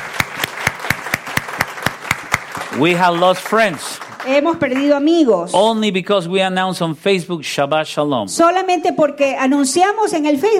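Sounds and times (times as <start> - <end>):
audience applause: 0.0 - 4.9
speech: 2.8 - 10.5.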